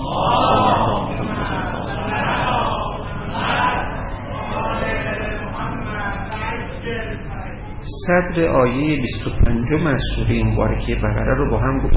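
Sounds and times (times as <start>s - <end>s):
congregation reciting salawat in unison: 0.0s - 7.2s
speech: 8.1s - 11.9s.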